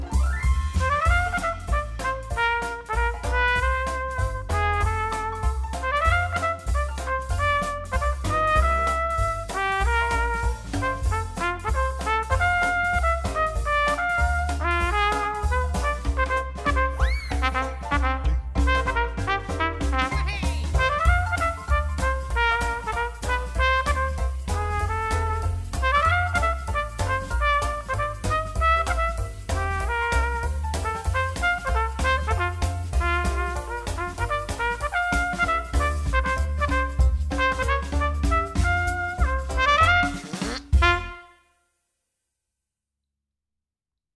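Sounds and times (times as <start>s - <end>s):
Dixieland style trumpet: 0.1s - 41.5s.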